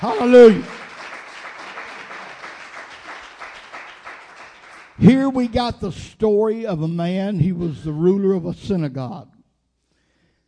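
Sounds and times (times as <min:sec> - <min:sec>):
speech: 0:00.0 - 0:00.7, 0:05.0 - 0:09.3
audience clapping hands in praise: 0:00.0 - 0:05.7.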